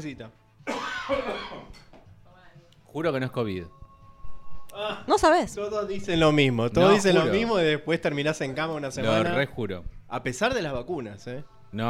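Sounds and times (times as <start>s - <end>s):
speech: 0.0s - 1.9s, 2.9s - 3.8s, 4.8s - 11.8s
person coughing after choking on a peanut: 0.6s - 1.9s.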